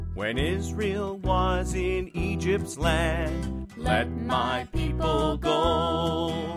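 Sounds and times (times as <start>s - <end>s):
person singing a spiritual: 0.2s - 6.5s.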